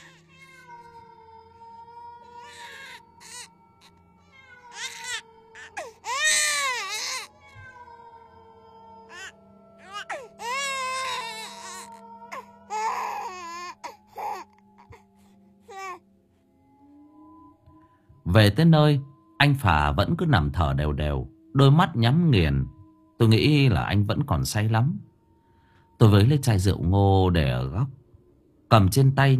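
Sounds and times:
child crying echoing from a ravine: 0.0 - 8.3, 9.0 - 14.5
speech: 18.3 - 25.1, 26.0 - 28.0, 28.7 - 29.3.

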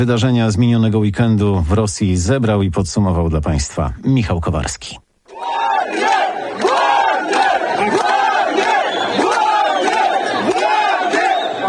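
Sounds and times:
speech: 0.0 - 5.0
continuous roar of many shouting voices: 5.3 - 11.6
large crowd of protesters chanting in unison at night picket: 5.3 - 11.6.

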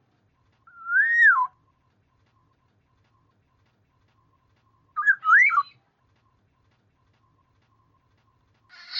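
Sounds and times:
black-naped oriole fluty whistled phrases: 0.7 - 1.6, 5.0 - 5.8.

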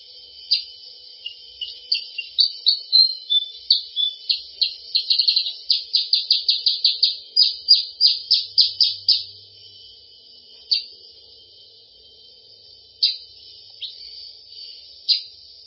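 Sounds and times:
sooty-headed bulbul calling in fast runs of high chirping notes: 0.4 - 9.4, 13.0 - 15.3.

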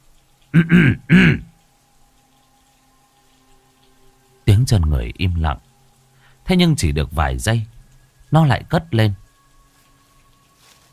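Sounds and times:
speech: 0.5 - 1.4, 4.7 - 5.7, 6.5 - 9.2
man clearing his throat: 0.6 - 1.5.

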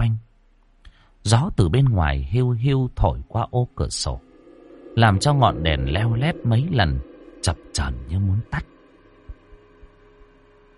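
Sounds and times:
steady low hum: 0.0 - 10.7
speech: 1.3 - 4.3, 5.0 - 8.7
pounding heartbeat: 9.3 - 10.4.

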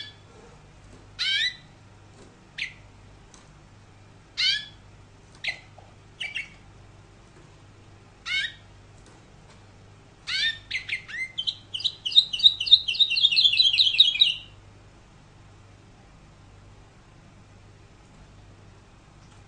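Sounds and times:
canary giving sharp chirps: 0.0 - 0.3, 1.2 - 1.8, 2.5 - 2.9, 4.3 - 6.7, 8.2 - 8.7, 10.2 - 14.6.

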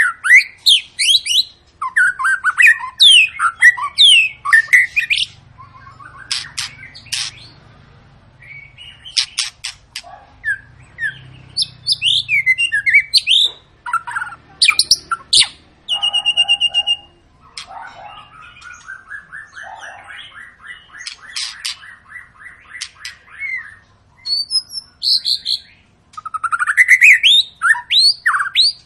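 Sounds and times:
white-rumped shama singing whistles: 0.0 - 7.5, 10.4 - 17.2, 18.2 - 28.8.

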